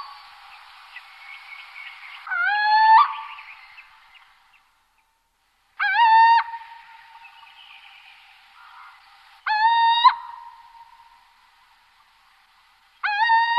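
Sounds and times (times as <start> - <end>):
little owl territorial call: 0.0 - 4.3, 5.8 - 11.3, 13.0 - 13.5.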